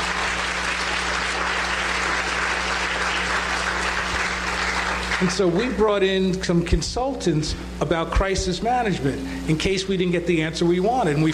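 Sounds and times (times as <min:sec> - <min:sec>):
crowd applause: 0:00.0 - 0:05.6
speech: 0:05.2 - 0:11.3.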